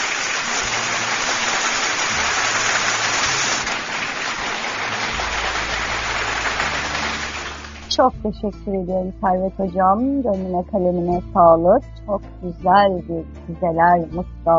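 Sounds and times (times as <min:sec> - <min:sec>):
applause: 0:00.0 - 0:07.9
speech: 0:08.0 - 0:14.5.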